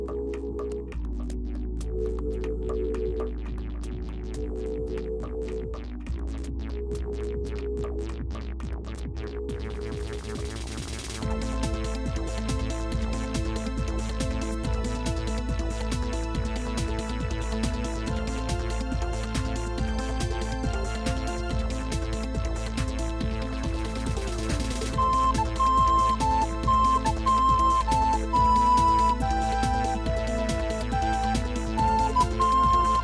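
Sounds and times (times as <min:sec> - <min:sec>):
techno corrida music: 0:00.2 - 0:33.0.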